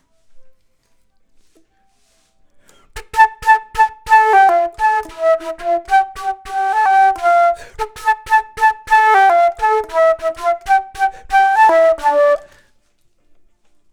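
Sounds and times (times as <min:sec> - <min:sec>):
flute: 0:02.8 - 0:12.7.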